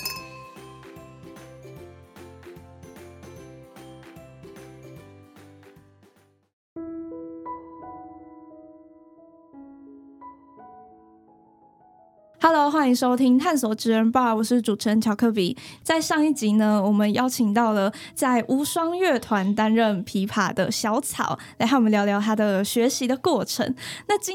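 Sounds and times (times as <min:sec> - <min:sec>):
glasses clinking in a toast: 0:00.0 - 0:00.8
speech: 0:12.4 - 0:24.3.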